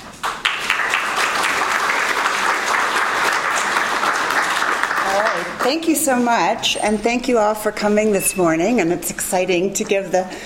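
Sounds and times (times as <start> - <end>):
audience applause welcoming a speaker to a morning talk: 0.1 - 5.9
speech: 5.4 - 10.4.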